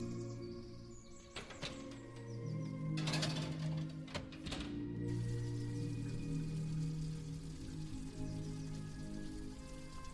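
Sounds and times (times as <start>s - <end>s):
old-time music: 0.0s - 10.1s
food sizzling in a kitchen: 5.1s - 10.1s.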